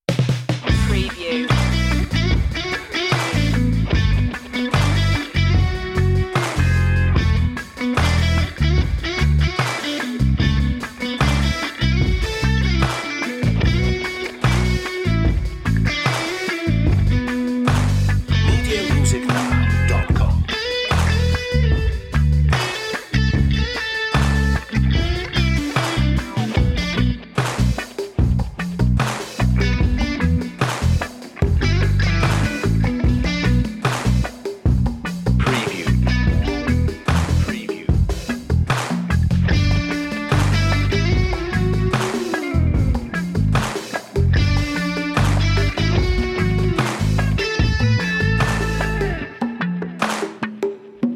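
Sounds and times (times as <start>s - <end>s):
lead guitar: 0.6s - 51.1s.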